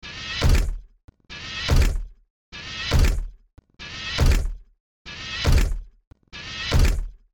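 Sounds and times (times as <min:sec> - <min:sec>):
robot walking: 0:00.0 - 0:07.3.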